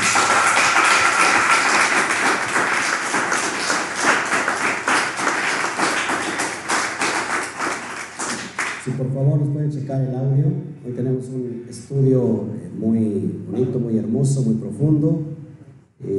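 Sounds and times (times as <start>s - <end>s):
applause: 0.0s - 8.9s
speech: 9.2s - 15.4s, 16.0s - 16.1s.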